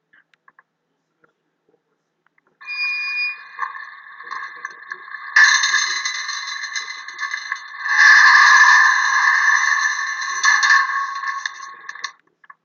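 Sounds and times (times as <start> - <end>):
gate: 2.6 - 12.1.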